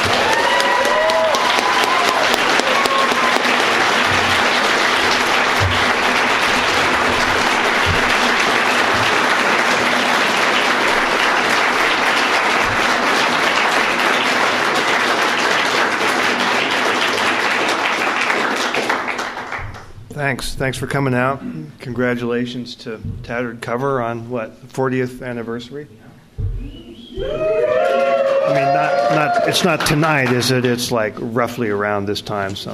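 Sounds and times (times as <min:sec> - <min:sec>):
audience applause at a Tattered Cover bookstore event: 0:00.0 - 0:19.9, 0:27.2 - 0:30.8
speech: 0:20.3 - 0:26.1, 0:28.5 - 0:32.7.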